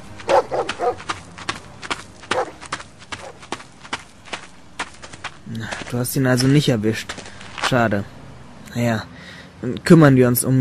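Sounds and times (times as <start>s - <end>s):
quick clattering footfalls: 0.1s - 7.8s
dog barking: 0.3s - 1.0s, 2.3s - 2.6s, 3.2s - 3.4s
speech: 5.9s - 10.5s.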